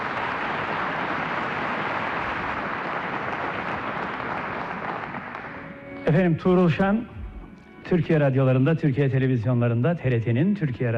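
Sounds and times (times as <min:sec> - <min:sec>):
audience applause: 0:00.0 - 0:06.0
speech: 0:06.1 - 0:07.2, 0:07.8 - 0:10.9.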